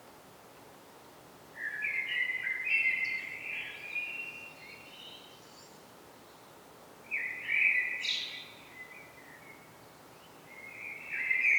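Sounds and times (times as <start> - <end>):
common blackbird Turdus merula song: 1.6 - 6.4, 7.1 - 11.5.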